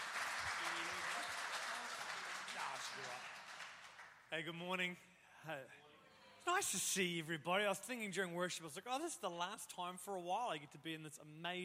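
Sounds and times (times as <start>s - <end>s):
audience round of applause: 0.0s - 4.2s
speech: 2.7s - 3.4s, 4.3s - 5.8s, 6.4s - 11.6s.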